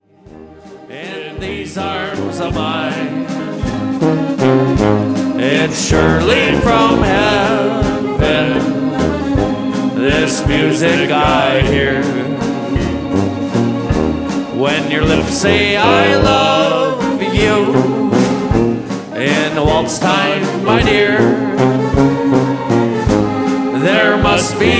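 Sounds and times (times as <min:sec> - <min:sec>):
waltz music: 0:00.0 - 0:24.7.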